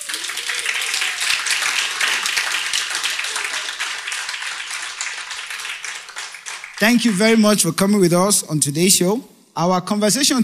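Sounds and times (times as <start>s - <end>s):
audience applause: 0.0s - 7.6s
speech: 6.8s - 10.4s.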